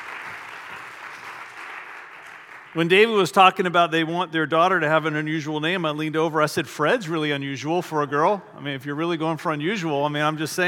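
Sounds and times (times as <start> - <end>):
audience clapping for a gift: 0.0 - 3.2
speech: 2.8 - 10.6.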